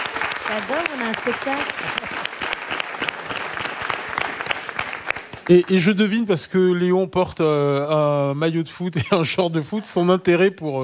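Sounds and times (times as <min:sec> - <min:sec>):
audience applauding: 0:00.0 - 0:06.2
speech: 0:00.5 - 0:02.4, 0:05.5 - 0:10.8.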